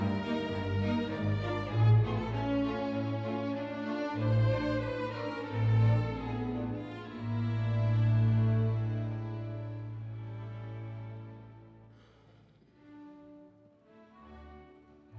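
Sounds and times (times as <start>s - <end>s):
march music: 0.0s - 10.9s.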